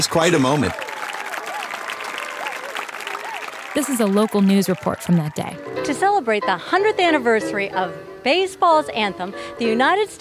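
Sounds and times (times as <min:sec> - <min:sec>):
speech: 0:00.0 - 0:00.9, 0:03.7 - 0:10.1
audience applause at stamp unveiling: 0:00.0 - 0:05.6.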